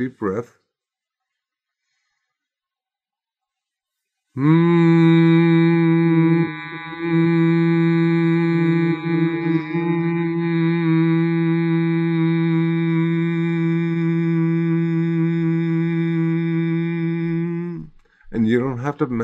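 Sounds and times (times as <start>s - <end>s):
speech: 0.0s - 0.6s, 4.4s - 5.4s, 18.8s - 19.2s
group humming a low drone in breathing exercise: 4.4s - 17.8s.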